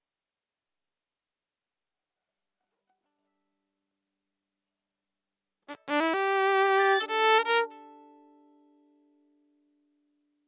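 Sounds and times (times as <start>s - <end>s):
violin: 5.8s - 7.8s.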